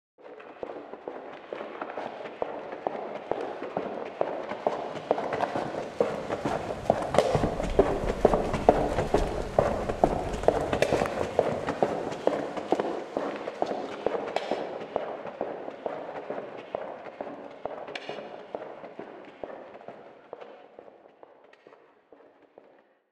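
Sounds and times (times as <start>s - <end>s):
footsteps moving left to right: 3.4s - 18.5s.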